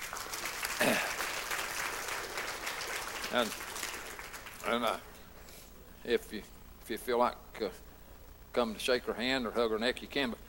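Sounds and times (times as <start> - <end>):
audience applause: 0.0 - 5.0
speech: 3.3 - 3.7, 4.7 - 5.1, 6.0 - 7.9, 8.5 - 10.4.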